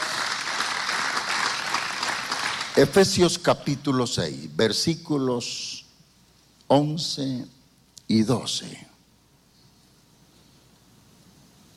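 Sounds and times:
church congregation applauding: 0:00.0 - 0:03.4
speech: 0:02.8 - 0:05.8, 0:06.7 - 0:08.9.

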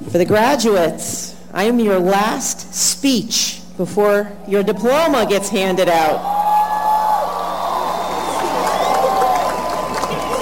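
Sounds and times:
speech: 0:00.1 - 0:06.3
cheers and whoops: 0:06.2 - 0:10.4
large audience clapping: 0:07.3 - 0:10.4.

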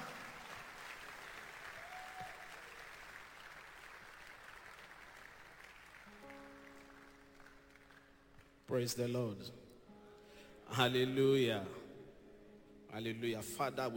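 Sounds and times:
audience applause: 0:00.0 - 0:08.5
speech: 0:08.7 - 0:09.6, 0:10.8 - 0:11.8, 0:13.0 - 0:13.9.

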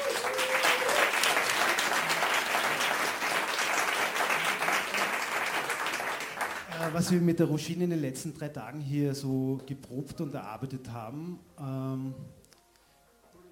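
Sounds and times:
audience applause: 0:00.0 - 0:07.2
speech: 0:06.9 - 0:12.4.

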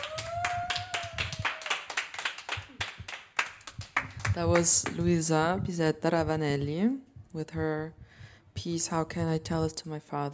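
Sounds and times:
audience applause: 0:00.0 - 0:04.4
speech: 0:04.4 - 0:08.0, 0:08.6 - 0:10.3.

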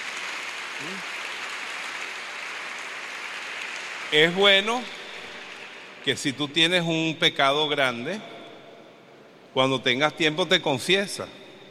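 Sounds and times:
audience applause: 0:00.0 - 0:06.2
speech: 0:00.8 - 0:01.2, 0:04.1 - 0:05.0, 0:06.0 - 0:08.3, 0:09.5 - 0:11.4.

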